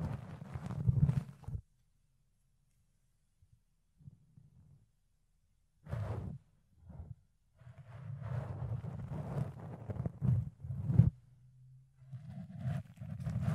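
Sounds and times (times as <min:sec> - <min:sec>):
fluffy ear cleaning soft rubbing and scratching: 0:00.0 - 0:01.6, 0:05.9 - 0:11.2, 0:12.0 - 0:13.5.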